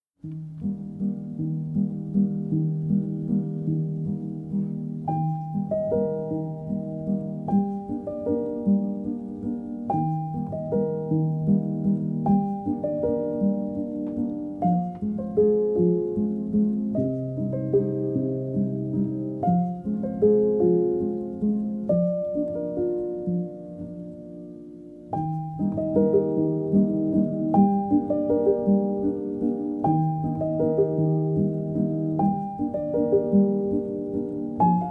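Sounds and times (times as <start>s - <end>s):
piano melody for working: 0.2s - 34.8s.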